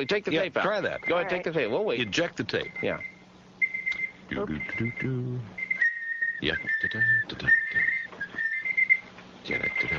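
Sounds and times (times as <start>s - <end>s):
speech: 0.0s - 3.2s, 4.3s - 5.6s, 6.4s - 8.0s, 9.4s - 9.9s
device beeping like an alarm clock: 0.9s - 1.5s, 2.6s - 9.9s.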